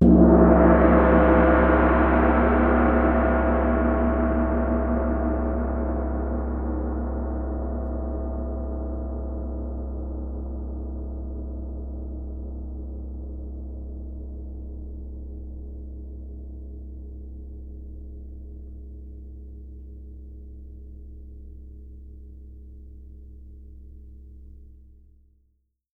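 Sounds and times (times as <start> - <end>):
big gong: 0.0 - 16.4.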